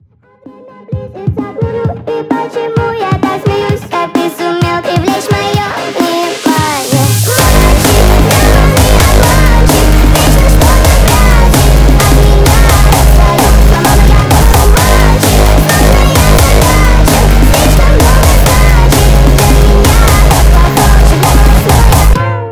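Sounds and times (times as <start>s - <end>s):
hardstyle remix: 0.2s - 22.5s.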